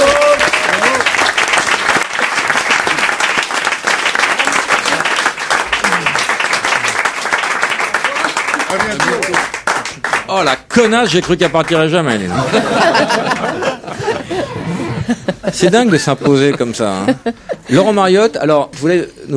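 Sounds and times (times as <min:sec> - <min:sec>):
faint voices and cheers: 0:00.0 - 0:01.1
audience applause: 0:00.0 - 0:14.1
speech: 0:10.4 - 0:13.8, 0:15.5 - 0:19.3
laughter: 0:12.2 - 0:17.9.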